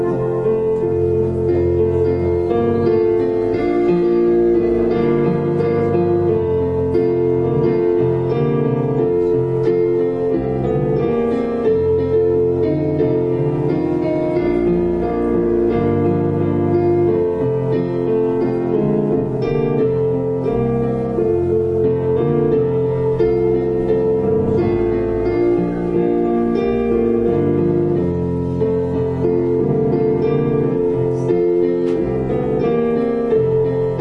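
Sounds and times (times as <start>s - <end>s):
trumpet playing a prelude: 0.0s - 0.6s
piano playing a prelude: 0.0s - 33.9s.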